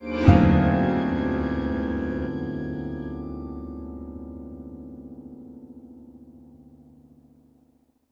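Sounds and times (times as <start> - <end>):
sitar with orchestra: 0.0 - 4.6.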